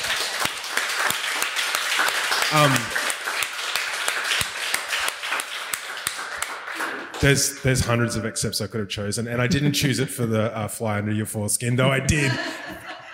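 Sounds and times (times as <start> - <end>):
audience applauding: 0.0 - 8.1
speech: 2.5 - 3.0, 7.2 - 13.1
laughter: 9.3 - 10.4, 11.9 - 13.1.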